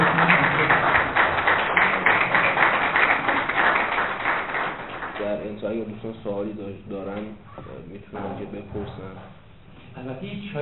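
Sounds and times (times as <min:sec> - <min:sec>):
crowd applauding: 0:00.0 - 0:05.7
speech: 0:06.0 - 0:10.6.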